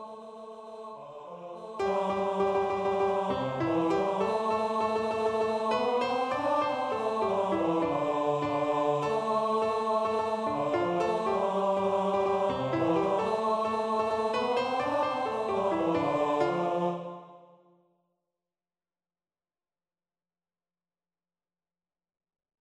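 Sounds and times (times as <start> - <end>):
a cappella singing practice: 0.0 - 17.5.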